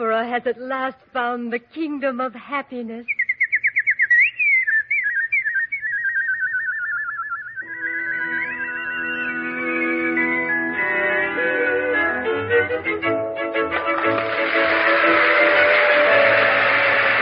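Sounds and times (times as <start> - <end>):
speech: 0.0 - 3.2
warbling trilling nightingale song: 3.0 - 10.4
soft sustained music: 7.6 - 17.2.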